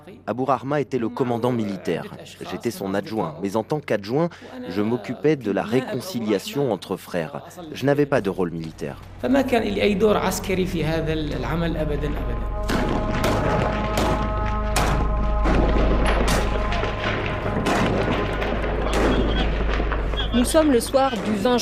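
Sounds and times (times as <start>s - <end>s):
speech: 0.0s - 12.9s, 20.4s - 21.6s
explosions during prison attack: 8.7s - 21.6s
gunfire during prison attack: 12.7s - 21.6s.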